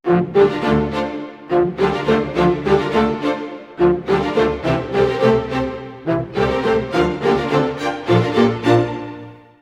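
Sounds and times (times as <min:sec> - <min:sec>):
orchestral arrangement in D minor: 0:00.0 - 0:09.5.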